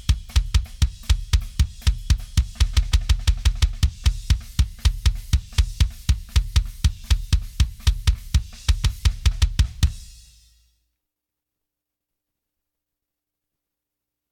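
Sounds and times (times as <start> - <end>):
drums: 0.0 - 10.7.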